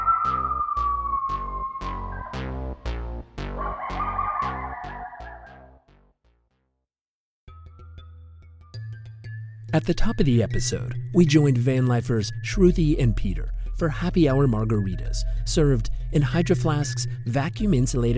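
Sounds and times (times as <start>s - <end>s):
coyotes yipping and barking: 0.0s - 2.7s, 3.6s - 5.7s
speech: 9.7s - 18.1s.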